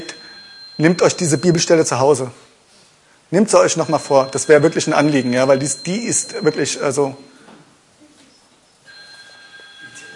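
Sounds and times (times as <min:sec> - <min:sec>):
telephone ringing: 0:00.0 - 0:02.0, 0:03.5 - 0:07.4, 0:08.9 - 0:10.1
speech: 0:00.8 - 0:02.5, 0:03.3 - 0:07.4.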